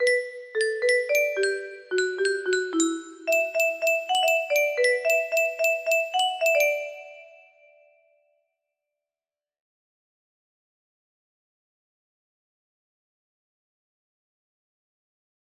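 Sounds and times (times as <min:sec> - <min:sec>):
music box melody: 0:00.0 - 0:07.7.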